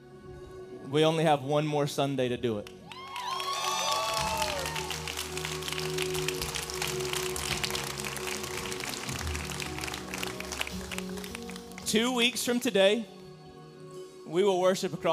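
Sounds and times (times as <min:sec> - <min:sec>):
speech: 0:00.9 - 0:02.8, 0:11.9 - 0:13.2, 0:14.3 - 0:15.1
audience clapping: 0:02.6 - 0:12.3.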